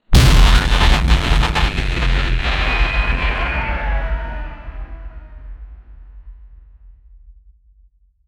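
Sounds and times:
ancient cosmic explosion: 0:00.1 - 0:05.5.

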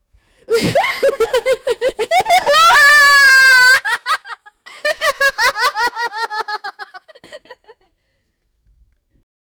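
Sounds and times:
teenage child laughing: 0:00.5 - 0:07.7.

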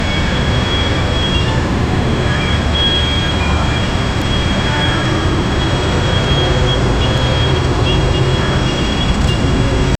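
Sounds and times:
inside a container at an airport: 0:00.0 - 0:09.9.

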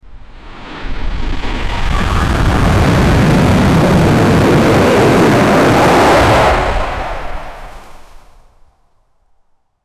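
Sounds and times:
tornado tearing through a small town: 0:00.8 - 0:08.2.

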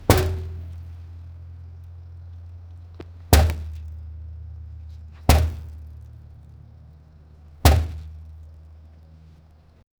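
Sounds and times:
car rubber tire bumps: 0:00.0 - 0:09.8.

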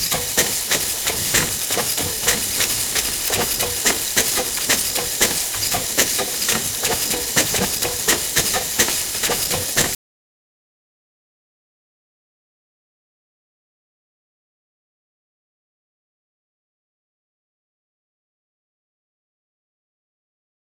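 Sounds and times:
steam engine: 0:00.0 - 0:10.0.

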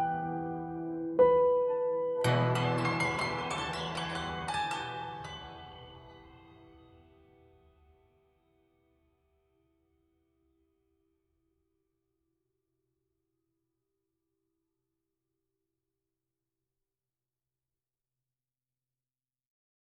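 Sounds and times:
soft emotional piano: 0:00.0 - 0:07.7.

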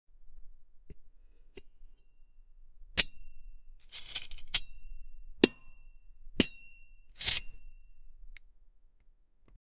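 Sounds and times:
industrial metal sound: 0:03.0 - 0:05.8, 0:06.4 - 0:07.9.

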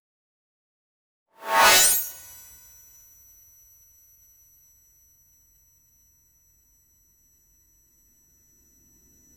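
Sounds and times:
short elegant golden shimmer: 0:01.4 - 0:02.7.

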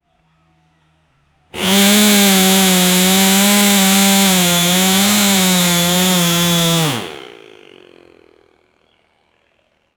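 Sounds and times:
Stihl chainsaw: 0:01.6 - 0:08.8.

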